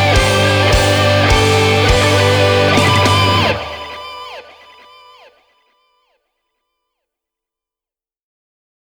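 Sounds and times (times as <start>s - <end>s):
metal music: 0.0s - 5.3s.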